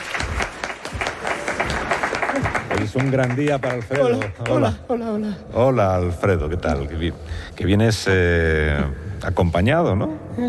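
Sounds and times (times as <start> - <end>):
crowd clapping: 0.0 - 4.9
speech: 2.9 - 10.4.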